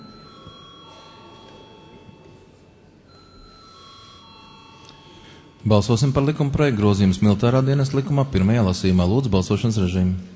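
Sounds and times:
parliament chamber electric bell ringing: 0.0s - 7.3s
low murmur: 0.0s - 10.3s
speech: 5.6s - 10.3s.

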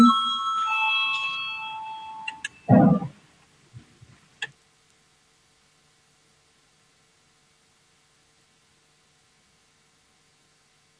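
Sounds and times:
parliament voting bell ringing before a vote: 0.0s - 3.1s.

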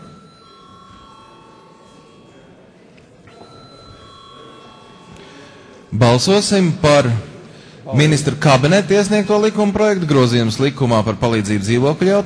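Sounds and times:
chairman's electronic bell ringing in the Latvian parliament: 0.0s - 7.1s
speech: 5.9s - 7.3s, 7.9s - 12.2s.

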